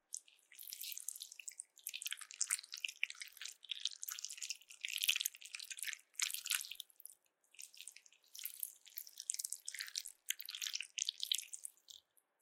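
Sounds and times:
slippery jelly being squished and handled: 0.0s - 12.1s.

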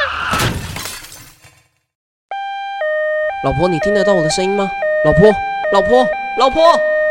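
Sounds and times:
car crash after emergency braking: 0.1s - 1.8s
glass shattering: 0.3s - 1.7s
speech: 3.4s - 6.9s.

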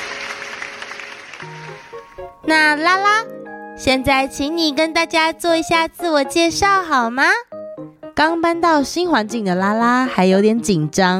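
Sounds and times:
applause: 0.0s - 2.2s
speech: 2.2s - 11.1s.

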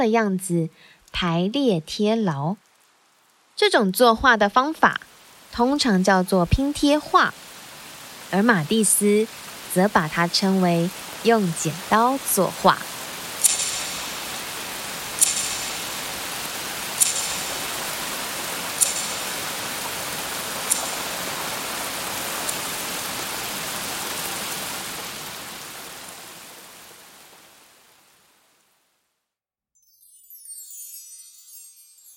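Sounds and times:
speech: 0.0s - 2.6s, 3.6s - 7.5s, 8.3s - 12.9s
rain falling: 0.0s - 29.0s
high sizzle: 5.1s - 23.6s
sharp ticks: 13.4s - 14.2s, 15.2s - 16.0s, 17.0s - 17.7s, 18.8s - 19.6s, 20.6s - 21.3s.

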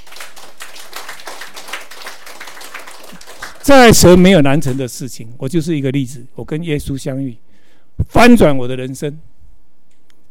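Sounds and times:
audience applauding: 0.0s - 4.0s
speech: 3.6s - 7.4s, 8.0s - 9.3s.

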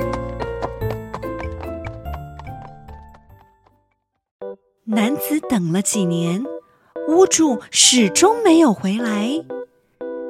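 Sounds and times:
horse hooves clip-clopping as a rider sets off: 0.0s - 3.9s
tonal music: 0.0s - 10.2s
speech: 4.9s - 6.5s, 7.1s - 9.6s.

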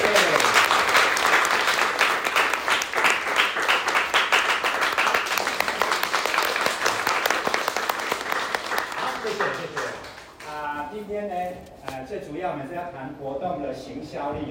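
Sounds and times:
audience applause: 0.0s - 10.6s
speech: 12.8s - 14.4s.

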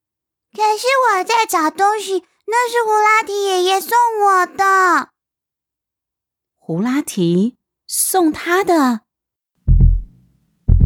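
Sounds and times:
speech: 0.6s - 5.1s, 6.7s - 9.0s
fast pounding heartbeat: 9.7s - 10.8s.

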